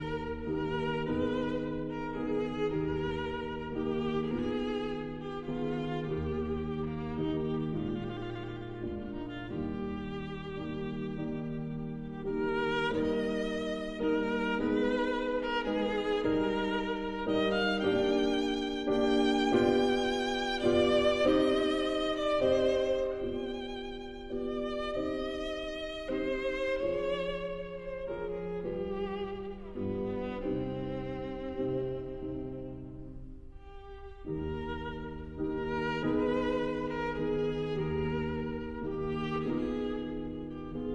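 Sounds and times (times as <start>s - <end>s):
violin and piano: 0.0s - 40.9s.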